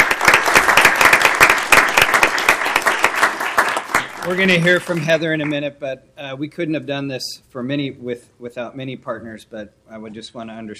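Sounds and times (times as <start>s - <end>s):
audience applause: 0.0s - 5.5s
speech: 4.3s - 10.7s.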